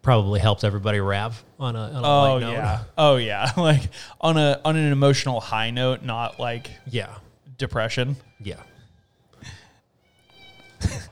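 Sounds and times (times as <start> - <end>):
speech: 0.0 - 8.7, 10.8 - 11.1
resident house cat meowing: 5.8 - 7.2, 8.1 - 11.1.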